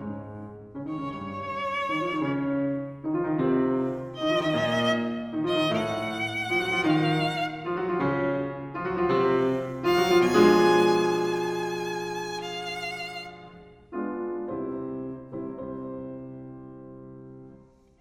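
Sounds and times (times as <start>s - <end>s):
violin sonata: 0.6s - 14.2s.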